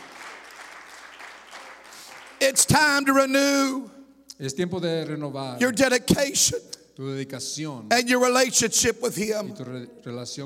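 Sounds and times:
audience clapping: 0.0s - 2.8s
speech: 2.4s - 10.4s.

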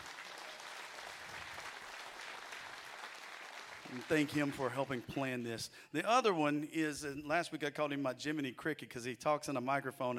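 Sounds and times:
audience applause: 0.0s - 5.1s
speech: 3.9s - 10.1s.

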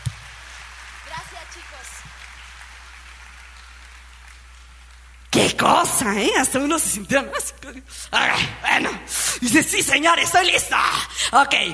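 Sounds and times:
audience applause: 0.0s - 5.3s
speech: 5.4s - 11.7s.

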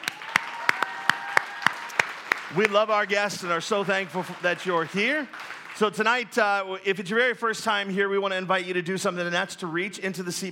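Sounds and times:
audience applause: 0.0s - 5.8s
speech: 2.5s - 10.4s.

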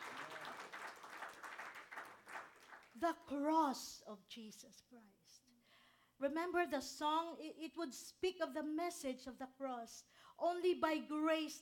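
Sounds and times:
congregation clapping in praise at a church service: 0.0s - 3.0s
speech: 3.0s - 5.6s, 6.2s - 11.5s.

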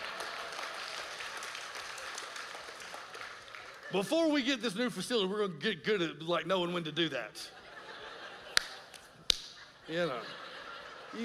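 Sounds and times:
audience clapping: 0.0s - 4.2s, 8.5s - 9.6s
speech: 3.9s - 7.6s, 9.9s - 10.4s
laughter: 7.3s - 11.2s.

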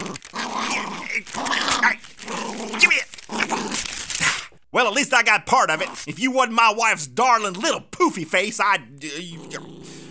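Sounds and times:
dog growling: 0.0s - 3.9s, 9.3s - 10.0s
speech: 4.8s - 9.4s.

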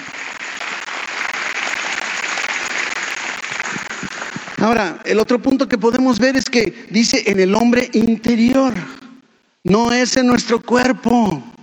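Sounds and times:
audience applauding: 0.0s - 5.4s
speech: 4.6s - 9.0s, 9.6s - 11.5s.

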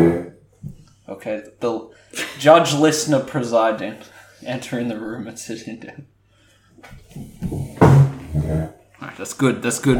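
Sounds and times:
speech: 1.1s - 6.1s, 6.8s - 9.9s
chairs being moved: 7.0s - 8.8s.

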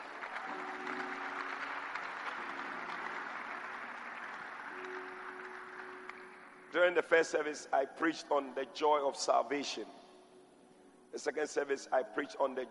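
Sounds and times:
audience clapping: 0.0s - 7.0s
speech: 6.8s - 10.0s, 11.2s - 12.6s.

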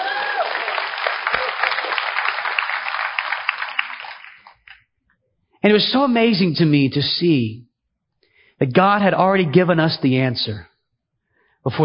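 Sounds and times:
audience applause: 0.0s - 4.8s
speech: 5.6s - 7.7s, 8.6s - 10.7s, 11.6s - 11.8s.

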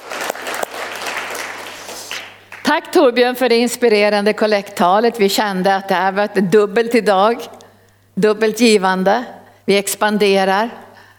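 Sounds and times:
applause: 0.0s - 2.7s
speech: 2.7s - 7.6s, 8.2s - 10.8s.

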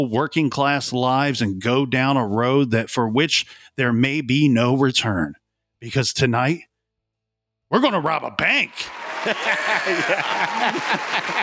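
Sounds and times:
speech: 0.0s - 6.7s, 7.7s - 11.4s
crowd applause: 8.5s - 11.4s
people cheering and laughing: 8.8s - 11.4s.

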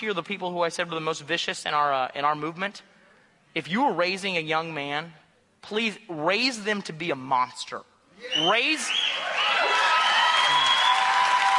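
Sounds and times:
speech: 0.0s - 3.0s, 3.6s - 9.3s
crowd whooping and cheering: 8.2s - 11.5s
crowd clapping: 9.1s - 11.5s.

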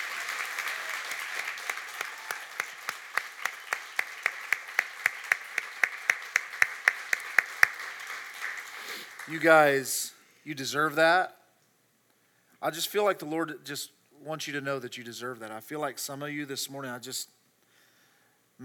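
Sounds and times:
crowd round of applause: 0.0s - 9.7s
speech: 9.3s - 11.4s, 12.6s - 17.4s.

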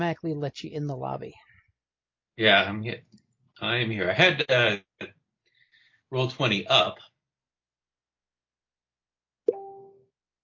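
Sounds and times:
speech: 0.0s - 1.5s, 2.4s - 5.2s, 6.1s - 7.1s
laughter: 2.4s - 3.0s, 3.6s - 4.9s, 6.2s - 6.9s
notification ding: 9.5s - 10.0s.

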